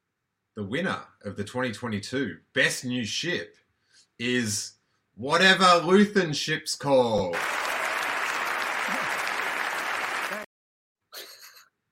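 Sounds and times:
speech: 0.6 - 3.6, 4.2 - 7.6
audience applause: 7.3 - 10.5.

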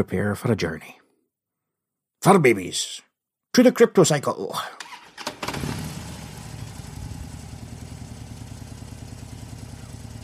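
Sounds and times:
speech: 0.0 - 1.0, 2.2 - 4.9
motorcycle with sidecars starting up and idling: 5.4 - 10.2.

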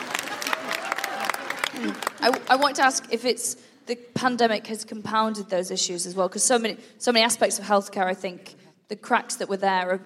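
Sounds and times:
audience clapping: 0.0 - 3.1
speech: 1.8 - 10.0.

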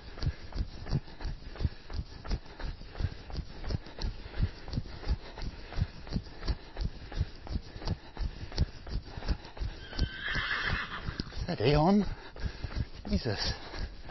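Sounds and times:
horse trotting hoofbeats: 0.0 - 14.0
horse neighing: 9.8 - 11.4
speech: 11.6 - 12.2, 13.1 - 13.6.

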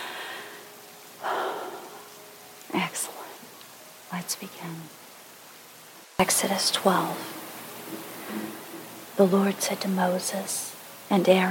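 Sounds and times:
person taking a deep breath during a guided breathing exercise: 0.0 - 2.1
speech: 4.1 - 5.0, 6.2 - 8.6, 9.2 - 11.4.

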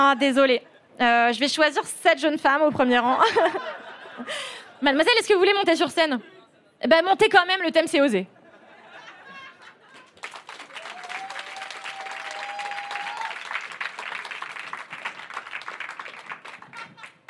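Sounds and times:
speech: 0.0 - 8.4
laughter: 3.2 - 4.9, 8.4 - 10.2, 16.4 - 17.2
audience applause: 9.9 - 17.2.

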